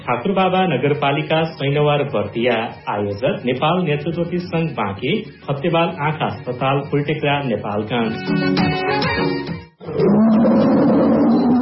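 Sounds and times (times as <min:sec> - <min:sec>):
speech: 0:00.0 - 0:10.7
tiger roaring in a radio jingle: 0:09.8 - 0:11.5.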